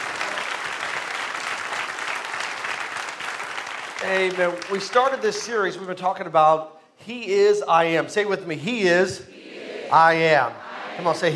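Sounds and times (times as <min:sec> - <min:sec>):
audience clapping: 0:00.0 - 0:06.0
speech: 0:04.0 - 0:09.3, 0:09.9 - 0:11.3.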